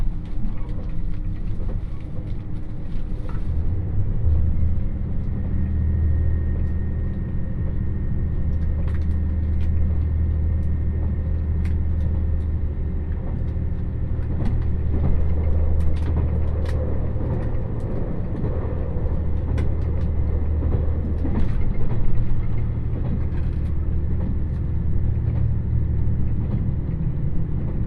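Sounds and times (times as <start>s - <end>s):
Dosan Line limited express Nanpu train heavy low rumble: 0.0s - 27.8s.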